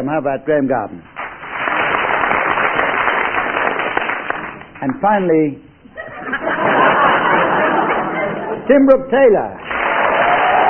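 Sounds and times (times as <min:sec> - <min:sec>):
speech: 0:00.0 - 0:01.1, 0:04.8 - 0:07.2, 0:08.7 - 0:09.6
studio audience applause: 0:01.2 - 0:04.8, 0:09.6 - 0:10.6
laughter: 0:05.9 - 0:08.7.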